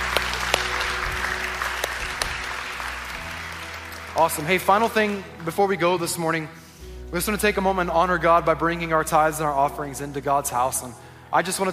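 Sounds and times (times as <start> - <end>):
church congregation applauding during a morning service: 0.0 - 6.4
speech: 4.2 - 11.7.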